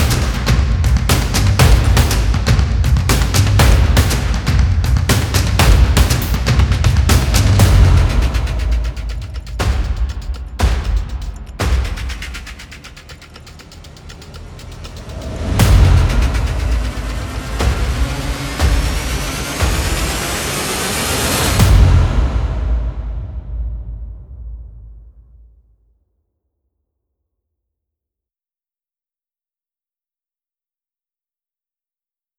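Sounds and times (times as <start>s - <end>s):
tension drum composition effect: 0.0s - 25.6s.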